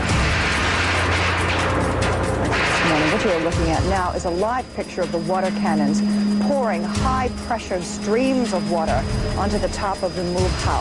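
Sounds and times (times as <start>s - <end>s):
explosion of a bomb dropped from a state police helicopter onto a house: 0.0s - 5.3s
speech: 3.2s - 10.7s.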